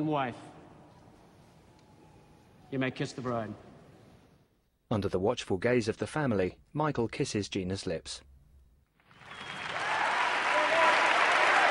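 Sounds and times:
speech: 0.0 - 0.5, 2.7 - 3.7, 4.9 - 8.3
wedding guests applauding: 9.0 - 11.6.

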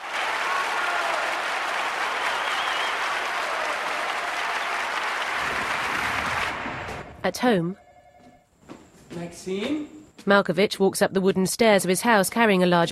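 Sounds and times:
audience applause in a standing ovation after a puppet stage piece: 0.0 - 7.1
speech: 7.2 - 7.8, 9.2 - 12.9.

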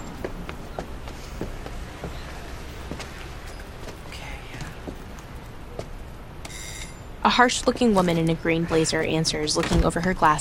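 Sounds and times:
footsteps climbing steps: 0.0 - 6.0
speech: 7.3 - 10.3.

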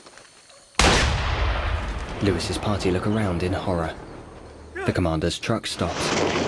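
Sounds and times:
single loud gunshot in an audio drama scene: 0.8 - 2.2
speech: 2.2 - 4.1, 4.8 - 6.3.

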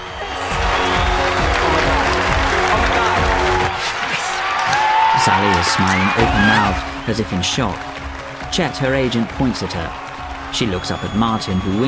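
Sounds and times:
many hands clapping: 0.0 - 11.8
speech: 5.2 - 7.9, 8.5 - 11.8.

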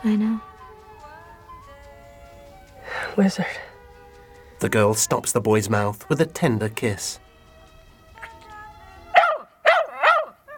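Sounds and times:
speech: 0.0 - 0.5, 3.2 - 3.7, 4.6 - 7.2
shaggy blonde dog barking: 9.1 - 10.5.

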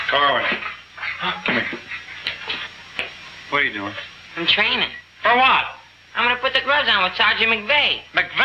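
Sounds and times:
speech: 0.1 - 2.0, 3.5 - 8.4
hands slapping a hard floor: 1.7 - 3.2.

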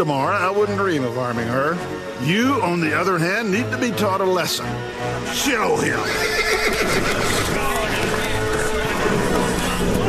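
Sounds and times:
speech: 0.0 - 7.8
horses whinnying and neighing: 5.8 - 10.0
constant noise: 6.6 - 10.0.

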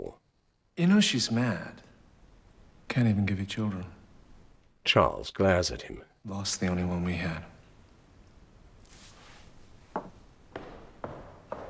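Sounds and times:
speech: 0.8 - 1.9, 2.9 - 4.0, 4.8 - 7.5
footsteps marching off down a corridor: 9.9 - 11.6.

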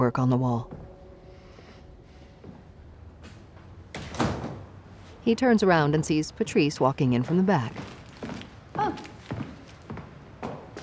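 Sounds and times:
speech: 0.1 - 0.8, 5.3 - 7.9
door closing: 3.2 - 4.7.

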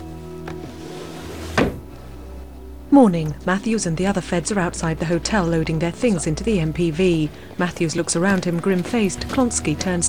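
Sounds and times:
steady low hum: 0.0 - 10.0
drawer shutting thump: 0.4 - 2.0
speech: 3.0 - 10.0.

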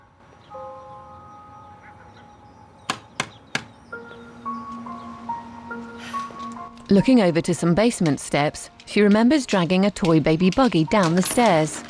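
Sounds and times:
knocking on a door: 2.9 - 3.8
speech: 6.9 - 11.8.

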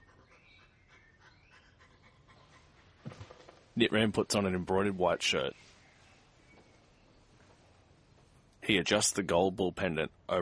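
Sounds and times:
small dog panting on a bedroom floor: 0.0 - 3.2
speech: 3.8 - 5.7, 8.7 - 10.4.

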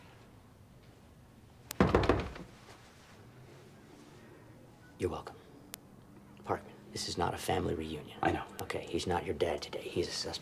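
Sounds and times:
knocking on a door: 1.8 - 2.5
speech: 5.0 - 5.4, 6.5 - 10.3.

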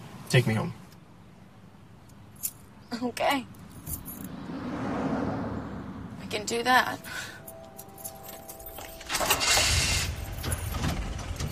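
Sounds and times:
speech: 0.3 - 0.8, 3.0 - 4.4, 6.3 - 7.4
jangling mechanical rattle: 2.4 - 2.7, 3.6 - 4.3, 7.4 - 11.5
car engine driving away: 3.7 - 11.5.

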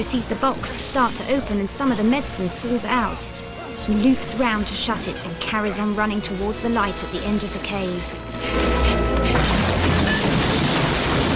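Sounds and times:
speech: 0.0 - 8.7
stalactites crashing down in a cave: 8.5 - 11.3.

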